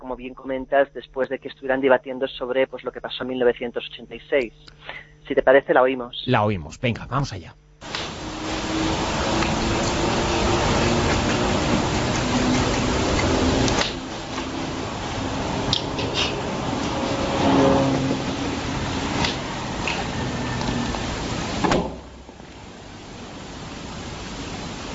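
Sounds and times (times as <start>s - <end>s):
speech: 0.0s - 7.6s
airplane diving: 6.4s - 21.6s.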